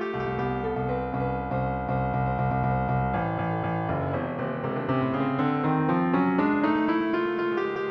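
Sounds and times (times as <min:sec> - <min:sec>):
midi music from Lorenz data: 0:00.1 - 0:07.8.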